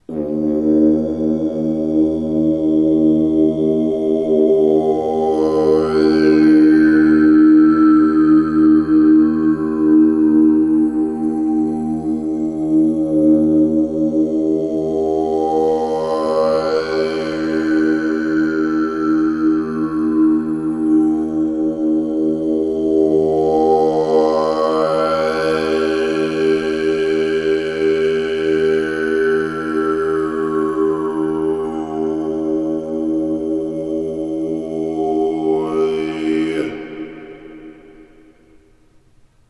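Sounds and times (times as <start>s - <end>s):
Tibetan chanting with reverb: 0.0s - 39.1s.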